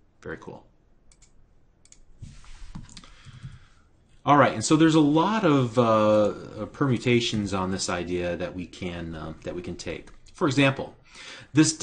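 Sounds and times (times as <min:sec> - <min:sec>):
soft hiss: 0:00.0 - 0:11.8
speech: 0:00.2 - 0:00.7, 0:04.2 - 0:11.8
computer mouse clicks on on-screen items: 0:01.1 - 0:02.1.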